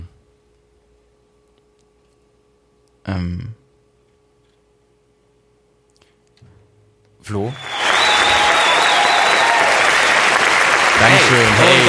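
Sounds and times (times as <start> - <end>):
speech: 3.1 - 3.6, 7.3 - 7.7, 11.0 - 11.8
applause sound effect from soundboard: 7.5 - 11.8.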